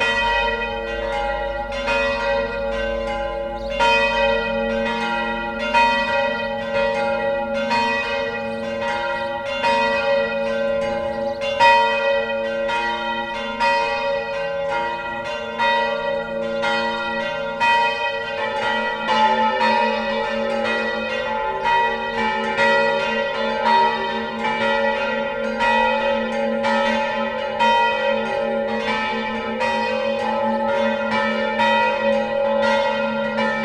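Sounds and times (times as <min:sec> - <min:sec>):
collegiate church bells ringing in full peal: 0:00.0 - 0:33.6.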